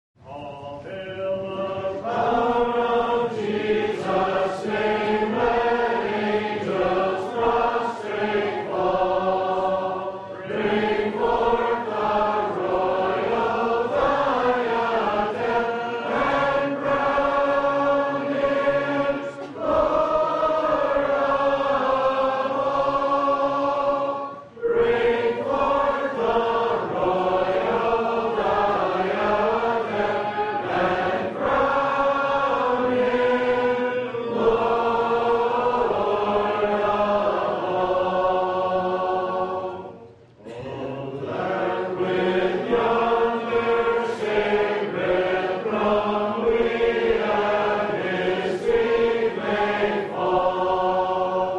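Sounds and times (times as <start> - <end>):
Gospel Hall hymn singing: 0.2 - 51.5.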